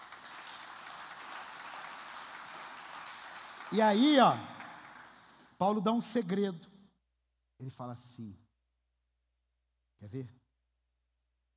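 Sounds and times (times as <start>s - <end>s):
crowd applause: 0.0s - 5.5s
speech: 3.7s - 4.5s, 5.6s - 6.7s, 7.6s - 8.4s, 10.0s - 10.4s.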